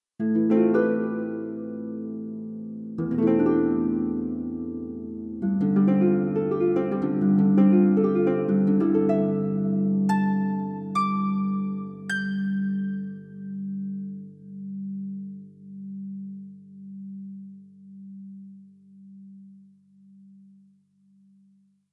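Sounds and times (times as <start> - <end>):
acoustic Celtic harp plucked: 0.2 - 14.6.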